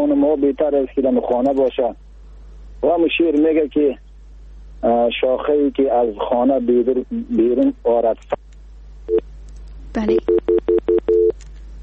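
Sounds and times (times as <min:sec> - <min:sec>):
speech: 0:00.2 - 0:02.0, 0:02.8 - 0:04.0, 0:04.8 - 0:08.4, 0:10.0 - 0:10.4
phone call disconnect tone beeps: 0:10.1 - 0:11.4.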